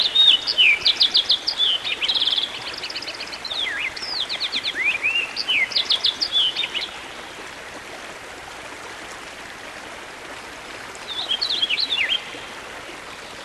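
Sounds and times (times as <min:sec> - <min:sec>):
songbird singing: 0:00.0 - 0:07.3, 0:10.4 - 0:12.6.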